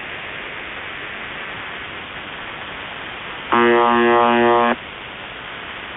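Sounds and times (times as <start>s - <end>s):
buzzer: 3.5s - 4.8s.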